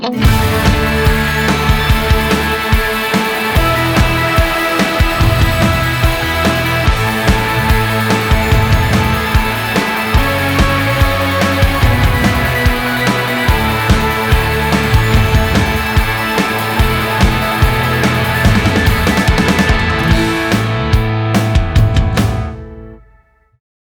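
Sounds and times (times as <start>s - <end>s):
instrumental music: 0.1s - 23.2s.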